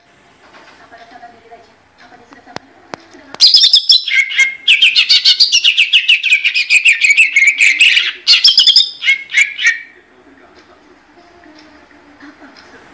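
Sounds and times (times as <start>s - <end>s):
greater green leafbird song: 3.4s - 10.0s.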